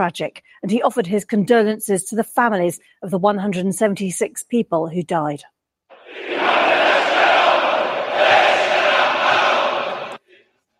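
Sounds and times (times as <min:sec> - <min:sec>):
speech: 0:00.0 - 0:06.7
large crowd chanting anti-American slogans: 0:05.9 - 0:10.4.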